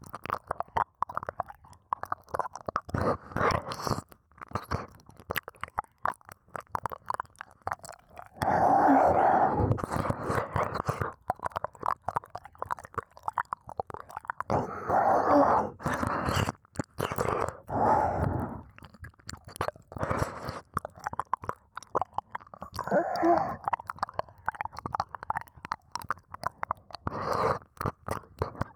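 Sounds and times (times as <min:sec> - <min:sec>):
ear licking: 0:00.0 - 0:28.7
oral sex sounds: 0:07.7 - 0:28.7.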